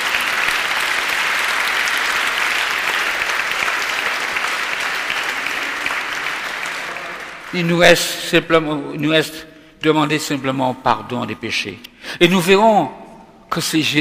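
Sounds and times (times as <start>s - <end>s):
audience applauding: 0.0s - 8.1s
speech: 7.5s - 13.9s.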